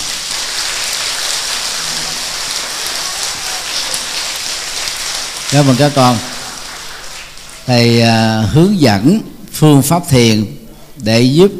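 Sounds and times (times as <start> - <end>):
loud round of applause: 0.0 - 8.0
speech: 5.5 - 6.3, 7.7 - 11.5.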